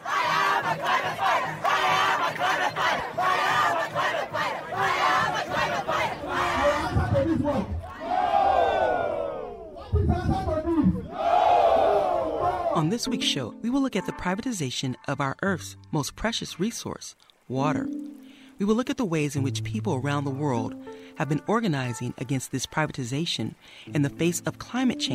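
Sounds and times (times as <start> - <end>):
climate protest crowd chanting in street: 0.0 - 9.8, 11.1 - 12.8
individual voices shouting and calling: 0.0 - 10.0, 11.0 - 12.8
speech: 12.8 - 18.0, 18.6 - 25.1.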